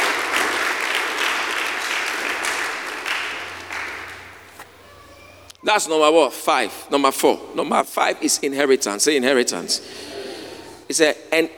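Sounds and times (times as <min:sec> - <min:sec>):
crowd clapping: 0:00.0 - 0:04.5
speech: 0:05.6 - 0:10.1, 0:10.9 - 0:11.5.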